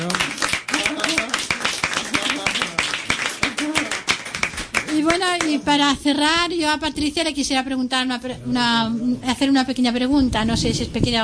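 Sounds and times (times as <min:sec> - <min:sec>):
audience applause at a talk on psychiatry and ideology: 0:00.0 - 0:05.7
speech: 0:05.5 - 0:11.2.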